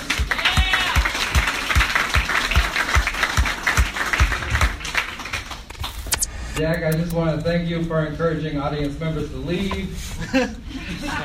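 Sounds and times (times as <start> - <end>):
audience applause for comedian: 0.0 - 5.7
speech: 6.6 - 11.2
laughter: 10.1 - 11.2.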